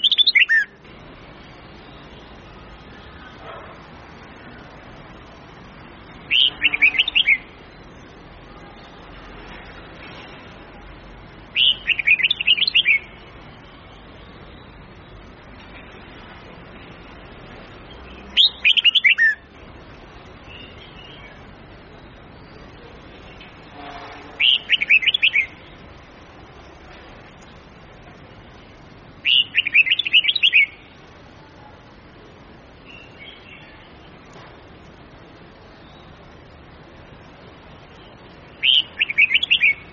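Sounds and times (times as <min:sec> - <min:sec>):
red-whiskered bulbul singing: 0:00.0 - 0:03.4, 0:04.3 - 0:08.8, 0:11.2 - 0:16.1, 0:16.7 - 0:31.2, 0:32.7 - 0:34.4, 0:37.6 - 0:39.9
background hiss: 0:00.0 - 0:39.9.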